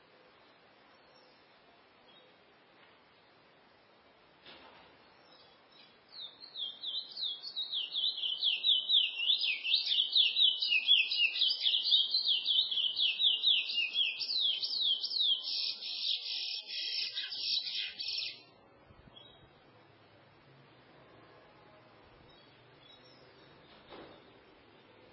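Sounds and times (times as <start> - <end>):
chestnut-bellied seed finch singing warble: 6.2 - 18.5.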